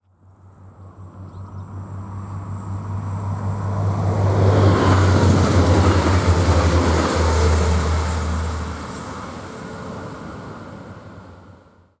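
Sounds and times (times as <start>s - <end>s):
diesel and electric trains: 0.2s - 11.9s.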